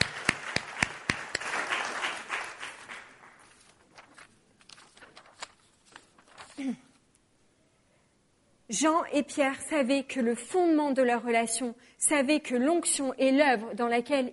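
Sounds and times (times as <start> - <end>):
audience applause: 0.0 - 3.5
speech: 6.6 - 6.8, 8.7 - 14.3.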